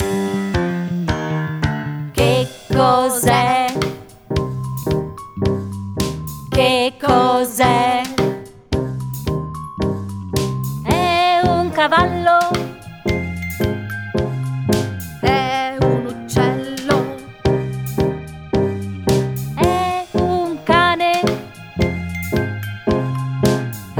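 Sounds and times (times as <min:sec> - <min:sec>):
Italian song: 0:00.0 - 0:23.9.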